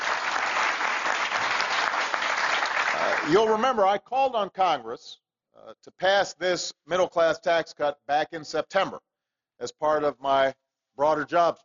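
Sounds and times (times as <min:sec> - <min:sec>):
audience applause: 0:00.0 - 0:03.4
speech: 0:03.2 - 0:11.6.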